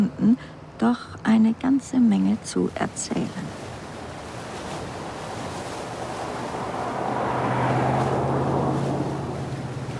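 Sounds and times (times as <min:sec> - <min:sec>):
speech: 0:00.0 - 0:03.6
hissing wash of ocean surf: 0:03.2 - 0:09.9
car engine drone driving a winding road along the sea: 0:06.3 - 0:09.9.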